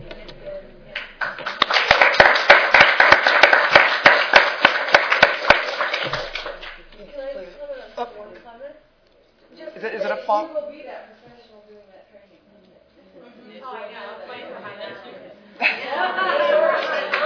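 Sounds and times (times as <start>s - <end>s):
hands clapping in applause: 1.0s - 6.8s, 16.8s - 17.2s
laughter: 9.6s - 10.4s, 14.2s - 17.2s
speech: 10.3s - 12.3s.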